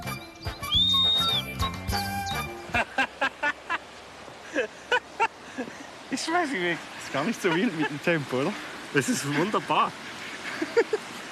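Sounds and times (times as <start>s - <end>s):
homemade carved wooden whistle being blown: 0.0s - 2.7s
laughter: 2.7s - 3.8s, 4.4s - 5.8s, 7.0s - 11.3s
speech: 6.3s - 10.0s, 10.6s - 11.1s.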